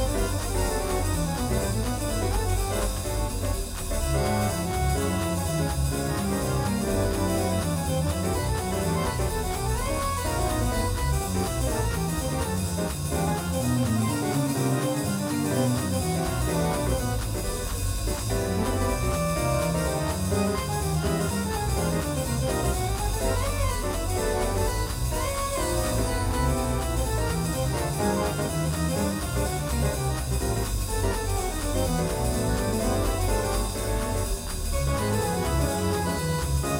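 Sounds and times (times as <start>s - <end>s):
grand player organ: 0.0s - 36.7s.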